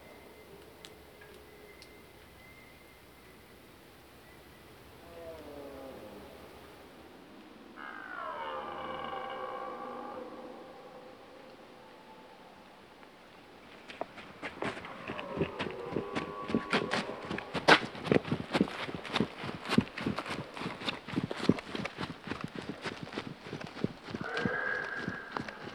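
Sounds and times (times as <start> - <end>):
red deer roaring: 7.8 - 12.4, 14.6 - 18.3, 24.1 - 25.7
crunching footsteps: 13.5 - 25.7
rustling: 13.7 - 25.7.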